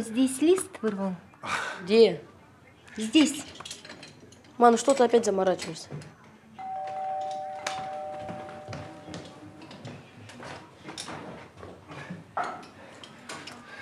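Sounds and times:
speech: 0:00.0 - 0:02.3, 0:03.0 - 0:03.6, 0:04.6 - 0:06.1
doorbell ringing with a steady electronic two-note tone: 0:06.6 - 0:09.8.

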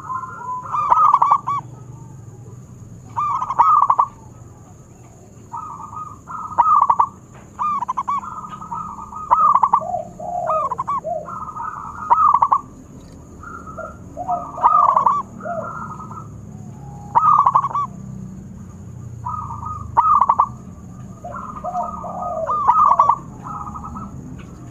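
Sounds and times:
zebra dove singing rapid pulsed coo phrases: 0:00.0 - 0:24.6.

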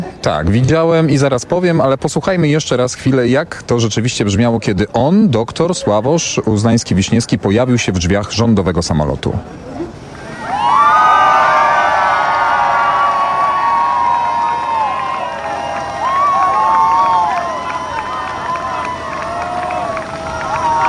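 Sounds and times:
speech: 0:00.2 - 0:09.8
crowd cheering and shouting at airport: 0:10.1 - 0:20.8.

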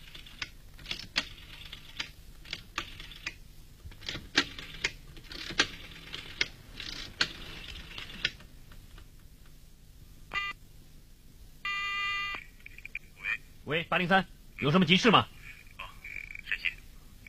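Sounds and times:
sharp mechanical clicks and rattles: 0:00.0 - 0:09.1
buzzy electronic telephone tone for an incoming call: 0:10.3 - 0:10.6, 0:11.7 - 0:12.5, 0:15.5 - 0:16.5
speech: 0:13.7 - 0:15.3.

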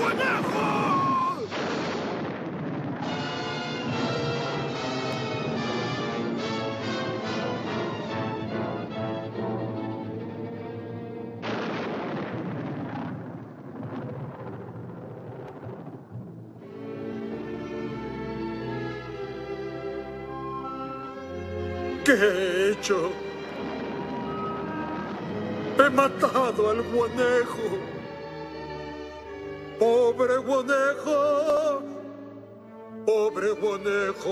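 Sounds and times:
thunder and lightning storm effect: 0:00.0 - 0:21.2, 0:21.9 - 0:32.4
dramatic tonal music: 0:03.0 - 0:12.1, 0:16.6 - 0:34.3
speech: 0:22.1 - 0:23.2, 0:25.9 - 0:28.0, 0:29.8 - 0:31.8, 0:33.1 - 0:34.3.

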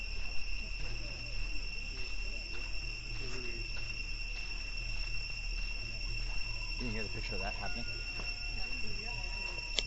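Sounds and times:
cicadas droning at Angkor Wat in Siem Reap, Cambodia: 0:00.0 - 0:09.8.

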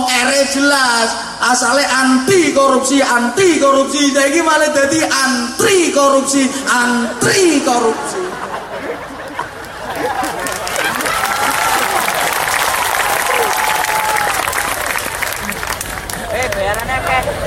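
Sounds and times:
speech: 0:00.5 - 0:08.4
chatter and laughter: 0:07.0 - 0:13.7, 0:15.0 - 0:17.4
audience applause at a comedy-style talk: 0:09.2 - 0:17.4.

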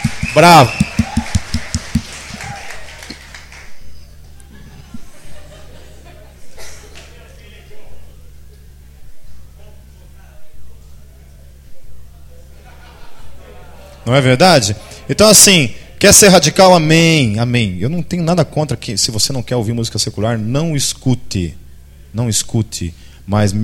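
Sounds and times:
applause: 0:00.0 - 0:03.8
speech: 0:00.4 - 0:00.9, 0:14.1 - 0:23.6
laughter: 0:04.2 - 0:07.4, 0:12.4 - 0:15.1.

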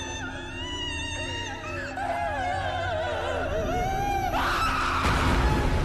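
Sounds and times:
woman wailing and crying: 0:00.0 - 0:05.7.

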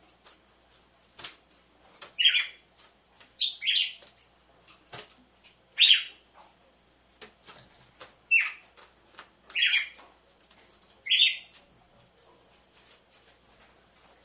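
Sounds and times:
red-cowled cardinal song: 0:02.2 - 0:02.6, 0:03.4 - 0:04.1, 0:05.8 - 0:06.2, 0:08.3 - 0:08.7, 0:09.5 - 0:10.0, 0:11.0 - 0:11.6.

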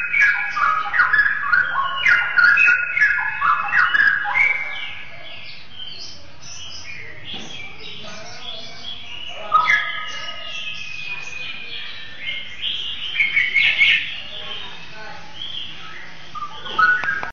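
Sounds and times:
Oriental magpie-robin singing: 0:00.0 - 0:17.3.

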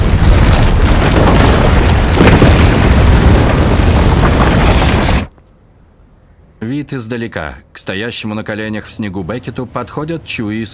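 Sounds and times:
powerful explosion: 0:00.0 - 0:05.3
speech: 0:06.8 - 0:10.7.

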